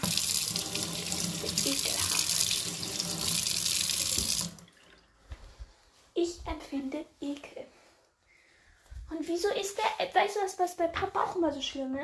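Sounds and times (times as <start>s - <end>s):
dishwasher filling with water: 0.0s - 5.1s
speech: 6.7s - 7.5s, 9.3s - 12.0s.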